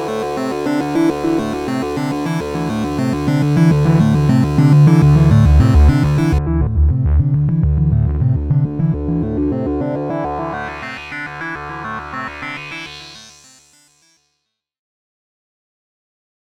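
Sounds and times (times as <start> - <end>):
filtered synthesizer sequence: 0.0 - 12.6.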